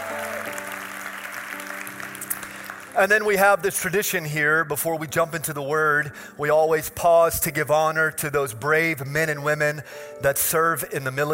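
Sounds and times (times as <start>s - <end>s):
audience members in Germantown applauding: 0.0s - 3.4s
speech: 3.0s - 11.3s.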